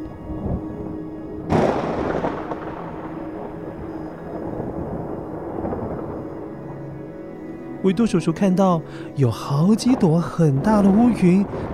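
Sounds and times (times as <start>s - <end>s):
distant low rumbling thunder: 1.4s - 6.9s, 9.7s - 11.7s
speech: 7.8s - 11.7s.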